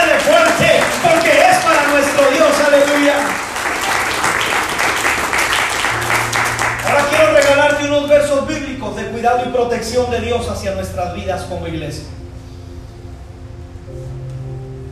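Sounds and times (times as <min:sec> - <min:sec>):
audience applauding: 0:00.0 - 0:08.0
sustained musical tones: 0:00.0 - 0:14.9
speech: 0:10.1 - 0:12.2.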